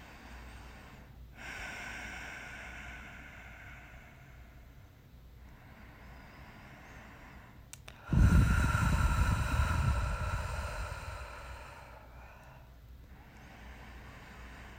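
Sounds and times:
person breathing slowly: 0.0 - 14.7.

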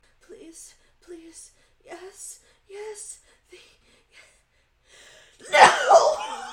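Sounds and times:
sneeze: 5.4 - 6.4.

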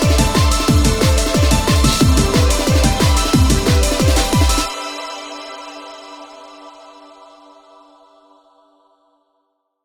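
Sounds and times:
racer beat: 0.0 - 4.7.

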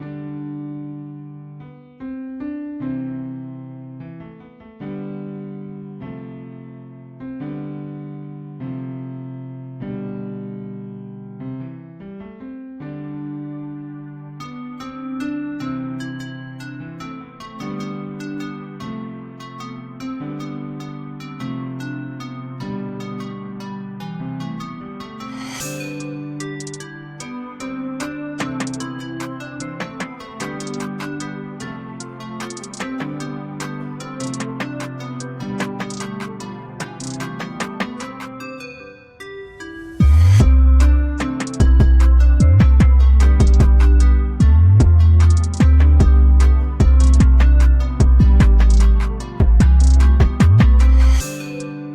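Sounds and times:
trap hip hop beat: 28.4 - 31.4, 32.0 - 38.2, 40.0 - 51.3.

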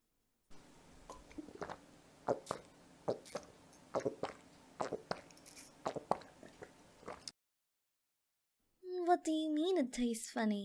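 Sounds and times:
person drinking cold milk: 1.1 - 7.3
speech: 9.2 - 10.6.

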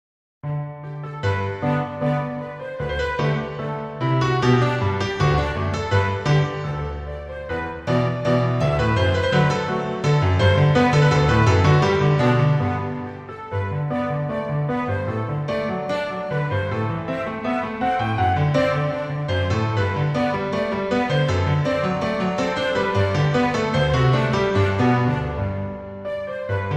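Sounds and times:
orchestral arrangement: 0.8 - 26.7.

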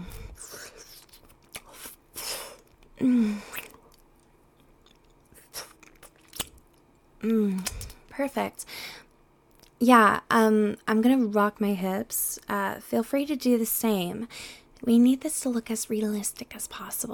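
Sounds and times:
voice imitating slurping with wet smacking mouth noises: 0.2 - 4.0
speech: 8.2 - 8.8, 9.8 - 17.1.

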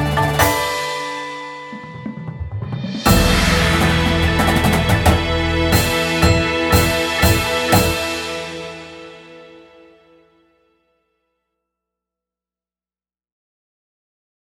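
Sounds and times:
indoor percussion: 0.0 - 9.6.

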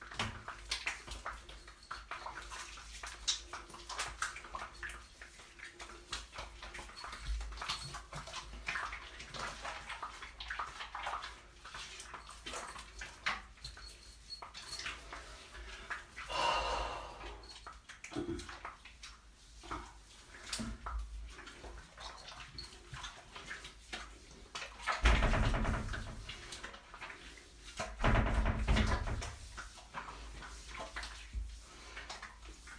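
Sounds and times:
morning shower running: 0.0 - 32.7
person moaning in the shower: 16.3 - 17.4.

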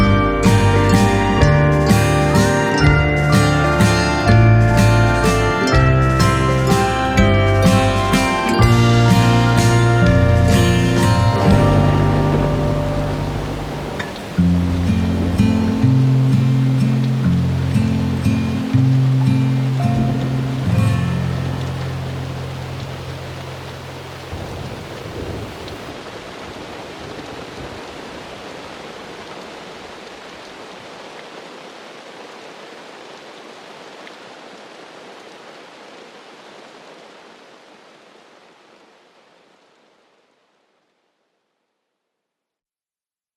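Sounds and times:
instrumental music: 0.0 - 23.0.

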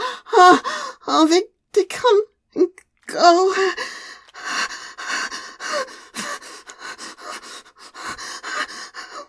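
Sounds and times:
speech: 0.4 - 2.3
person panting heavily: 3.7 - 9.2.

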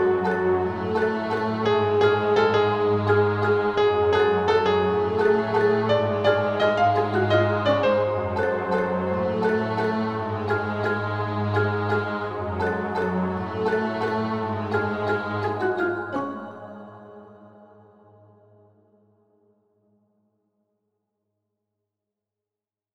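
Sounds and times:
piano piece: 0.0 - 17.4.

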